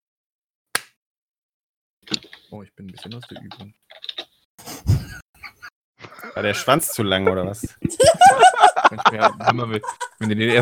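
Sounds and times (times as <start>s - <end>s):
crisp sharp hand clap: 0.8s - 1.0s
speech: 2.5s - 3.9s, 6.4s - 10.6s
laughter: 4.8s - 10.6s.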